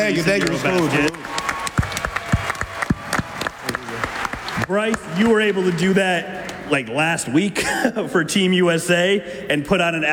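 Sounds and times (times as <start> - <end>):
speech: 0.0 - 1.5, 4.7 - 10.1
audience applause for bronze-medal-winning national team players on a talk show: 0.0 - 6.7.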